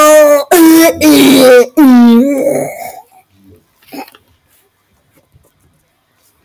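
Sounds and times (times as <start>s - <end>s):
cartoon voice imitating vomiting: 0.0s - 3.1s.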